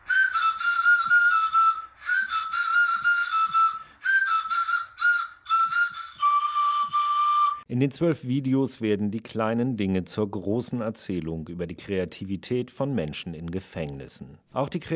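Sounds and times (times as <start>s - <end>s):
pan flute made from disposable razor handles in a prison: 0.0s - 7.7s
speech: 7.7s - 14.9s.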